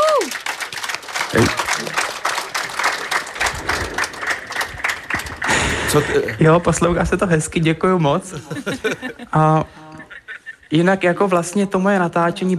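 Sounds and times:
crowd applauding: 0.0s - 6.4s
speech: 1.3s - 2.1s, 6.0s - 9.9s, 10.7s - 12.5s
laughter: 8.3s - 10.9s.

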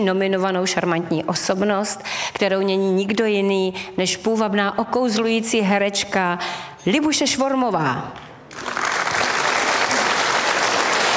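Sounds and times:
speech: 0.0s - 8.7s
audience applause: 8.5s - 11.1s.

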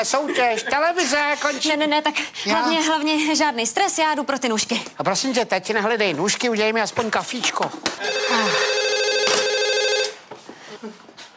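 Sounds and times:
speech: 0.0s - 8.7s
telephone ringing: 8.0s - 10.2s.

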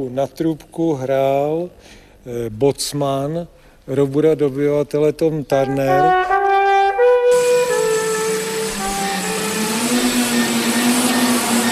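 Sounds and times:
speech: 0.0s - 6.3s
many model aircraft propellers: 7.3s - 11.7s
many electric model aircraft motors: 7.4s - 11.7s.

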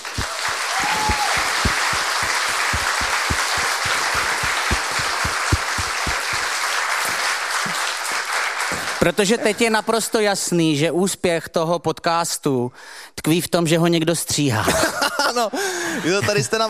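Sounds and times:
audience applause: 0.0s - 9.2s
speech: 9.0s - 16.6s.

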